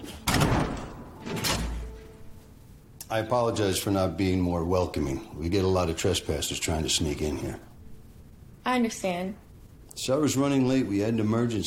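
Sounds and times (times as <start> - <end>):
door shutting with a thud: 0.2 - 2.0
speech: 3.1 - 7.7, 8.6 - 9.4, 10.0 - 11.6.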